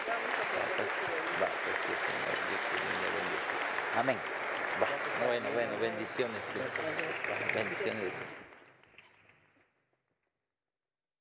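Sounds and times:
audience applause: 0:00.0 - 0:08.8
speech: 0:04.0 - 0:04.3, 0:05.2 - 0:08.4.

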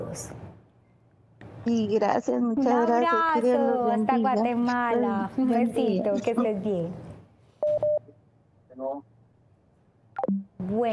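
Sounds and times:
speech: 0:00.1 - 0:00.4, 0:01.6 - 0:07.0, 0:10.7 - 0:10.9
telephone call signal short beeps: 0:07.6 - 0:08.0.

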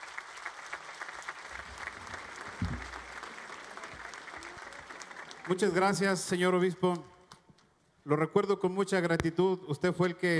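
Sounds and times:
audience applause: 0:00.0 - 0:06.4
speech: 0:05.5 - 0:07.1, 0:08.0 - 0:10.3.

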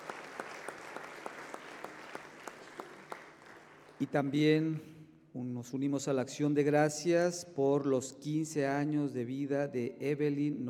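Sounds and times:
audience applause: 0:00.0 - 0:04.1
speech: 0:04.0 - 0:10.6.

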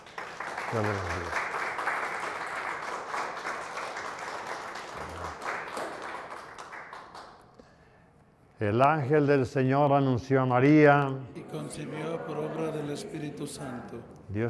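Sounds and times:
audience applause: 0:00.0 - 0:07.4
speech: 0:00.7 - 0:01.4, 0:08.6 - 0:14.4.

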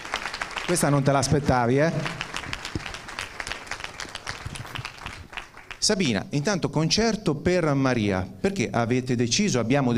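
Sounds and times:
crowd applauding: 0:00.0 - 0:06.1
speech: 0:00.7 - 0:02.2, 0:05.9 - 0:09.9.

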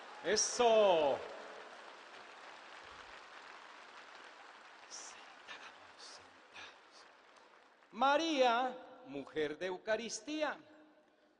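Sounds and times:
audience applause: 0:00.0 - 0:08.4
speech: 0:00.2 - 0:01.4, 0:08.0 - 0:10.7.

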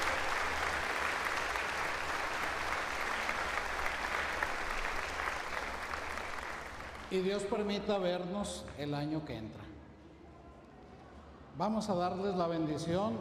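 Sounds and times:
audience applause: 0:00.0 - 0:07.5
speech: 0:07.1 - 0:09.7, 0:11.6 - 0:13.2.

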